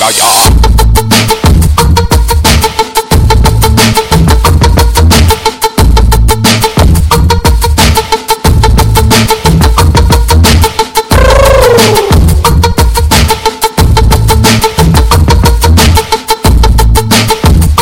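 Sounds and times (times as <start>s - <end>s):
bass: 0.2s - 17.8s.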